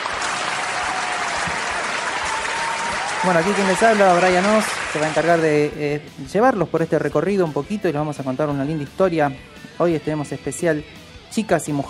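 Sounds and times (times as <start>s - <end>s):
crowd applause ovation: 0.0s - 5.6s
speech: 3.2s - 11.8s.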